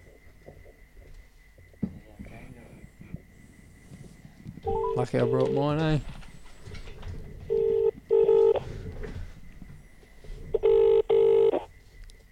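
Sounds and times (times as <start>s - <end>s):
telephone ringing on a call: 4.7s - 6.1s, 7.5s - 8.6s, 10.6s - 11.7s
speech: 5.0s - 6.2s.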